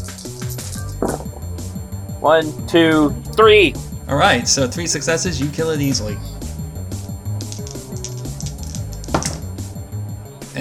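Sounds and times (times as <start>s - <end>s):
speech: 2.2s - 6.4s
six dice rattling across a hard surface: 7.5s - 9.4s.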